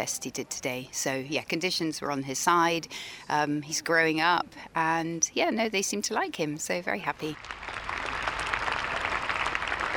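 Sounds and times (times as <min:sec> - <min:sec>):
speech: 0:00.0 - 0:07.9
crowd applause after dressage test: 0:07.4 - 0:09.9.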